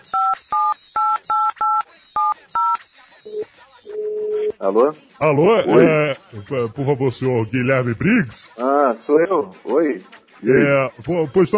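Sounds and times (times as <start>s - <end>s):
telephone number dialed on a keypad: 0.1s - 4.4s
speech: 4.6s - 11.5s.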